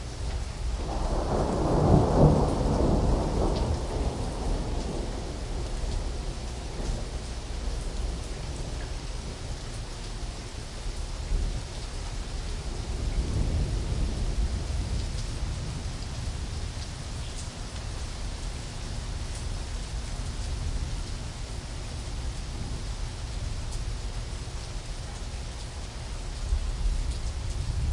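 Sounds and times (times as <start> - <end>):
thunderstorm in Phoenix Arizona: 0.2 - 10.3, 10.9 - 25.2, 25.8 - 27.9.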